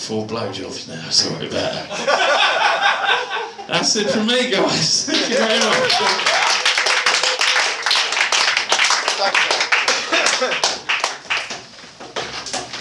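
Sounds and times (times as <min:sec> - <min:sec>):
speech: 0:00.1 - 0:02.5, 0:03.7 - 0:06.4, 0:09.2 - 0:09.6, 0:10.4 - 0:10.7
laughter: 0:01.8 - 0:11.1
crowd applauding: 0:05.1 - 0:11.7.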